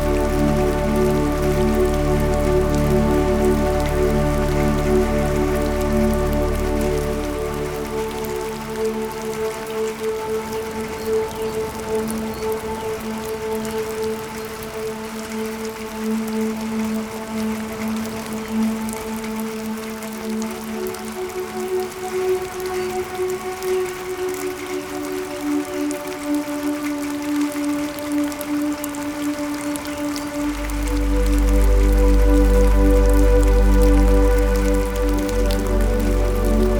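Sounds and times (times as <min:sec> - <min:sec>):
rain: 0:00.0 - 0:36.7.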